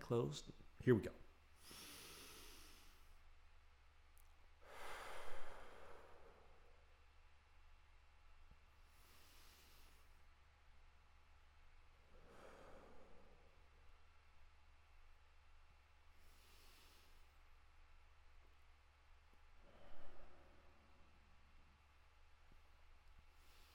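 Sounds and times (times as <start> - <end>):
speech: 0.1 - 1.8
slow breathing in through the nose during a breathing exercise: 1.6 - 3.2, 4.6 - 6.9, 8.8 - 10.4, 12.1 - 13.7, 16.1 - 17.6, 19.5 - 21.1, 23.1 - 23.7.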